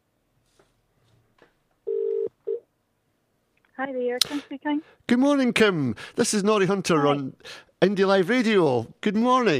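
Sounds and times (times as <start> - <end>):
telephone dialing and ringing: 1.9 - 2.3
speech: 3.9 - 9.5.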